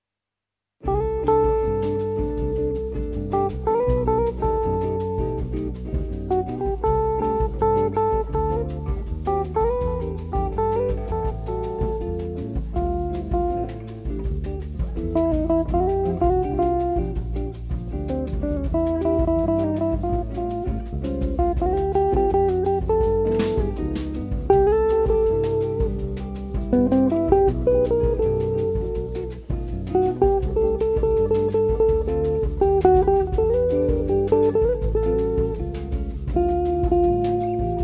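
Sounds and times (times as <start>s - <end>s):
guitars: 0.8s - 37.8s.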